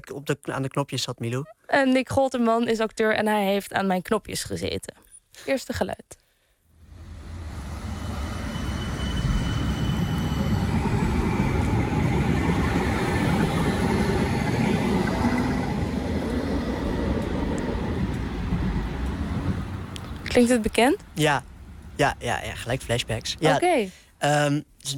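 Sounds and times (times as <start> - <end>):
speech: 0.1 - 6.2, 20.4 - 24.9
tram passing in Nieuwegein: 6.8 - 23.6.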